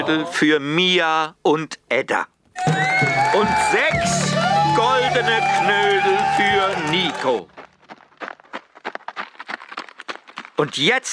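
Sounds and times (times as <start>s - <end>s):
speech: 0.0s - 7.6s, 10.6s - 11.1s
hoofbeats of a ridden Przewalski's horse: 5.9s - 11.1s.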